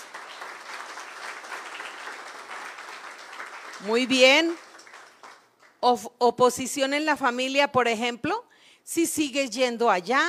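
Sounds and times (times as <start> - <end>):
audience applause: 0.0 - 5.6
speech: 3.8 - 4.6, 5.8 - 10.2.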